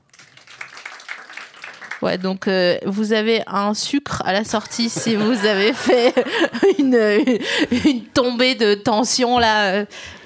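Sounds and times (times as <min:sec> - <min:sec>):
audience applause: 0:00.1 - 0:02.2
speech: 0:02.0 - 0:10.2
laughter: 0:04.7 - 0:08.1.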